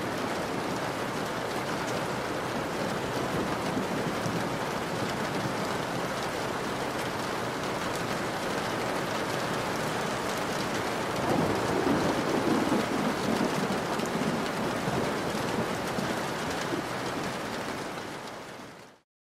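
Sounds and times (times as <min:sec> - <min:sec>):
rain on window sill: 0:00.0 - 0:19.0
distant thunder: 0:10.9 - 0:17.0.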